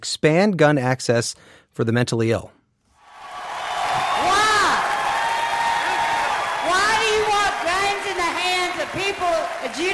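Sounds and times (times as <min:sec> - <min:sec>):
speech: 0:00.0 - 0:02.6
angry crowd shouting at town hall: 0:03.1 - 0:09.8.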